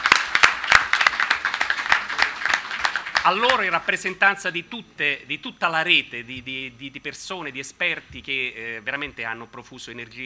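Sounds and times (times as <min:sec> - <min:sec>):
conference audience applause for event speakers: 0:00.0 - 0:04.2
speech: 0:03.2 - 0:10.2.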